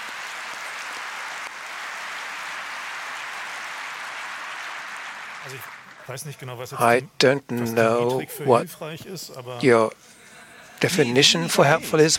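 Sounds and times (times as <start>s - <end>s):
crowd applause: 0.0s - 7.0s
speech: 5.4s - 10.2s, 10.8s - 12.1s.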